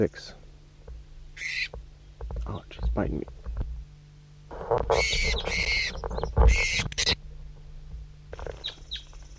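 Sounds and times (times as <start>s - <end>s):
speech: 0.0s - 0.4s, 2.5s - 3.4s, 4.7s - 7.2s
low steady hum: 0.0s - 9.3s
bird chirping: 1.3s - 2.9s, 4.9s - 7.2s, 8.4s - 9.3s.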